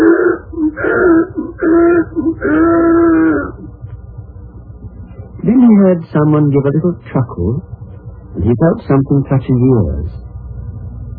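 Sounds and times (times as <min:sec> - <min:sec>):
donkey braying: 0:00.0 - 0:03.7
speech: 0:05.8 - 0:07.8, 0:08.4 - 0:10.2.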